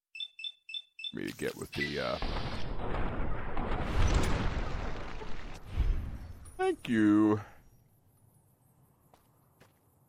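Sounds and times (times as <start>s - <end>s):
speech: 1.1s - 4.7s, 6.6s - 7.5s
video game grenade launcher explosions: 1.8s - 6.5s.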